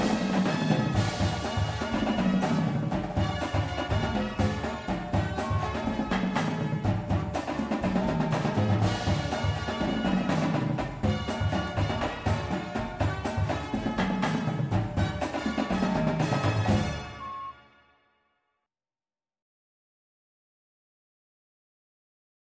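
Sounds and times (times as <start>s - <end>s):
full drumline: 0.0s - 17.5s
music: 0.0s - 18.6s.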